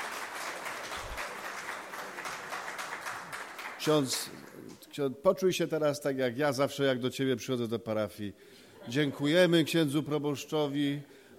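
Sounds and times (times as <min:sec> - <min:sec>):
audience applause: 0:00.0 - 0:04.7
speech: 0:03.8 - 0:11.2.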